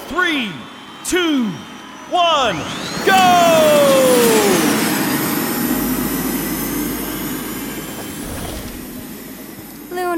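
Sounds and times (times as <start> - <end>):
hover racer engines roaring at race start: 0.0 - 10.1
speech: 0.1 - 4.2.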